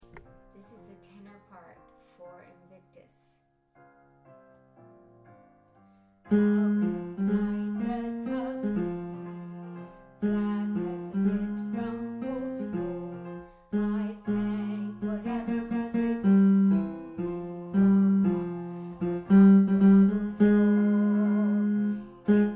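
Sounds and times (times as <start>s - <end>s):
tenor singing: 6.3s - 16.9s, 17.7s - 22.5s.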